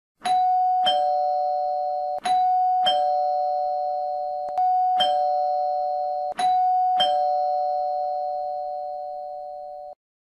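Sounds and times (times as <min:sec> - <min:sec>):
house doorbell: 0:00.2 - 0:10.0.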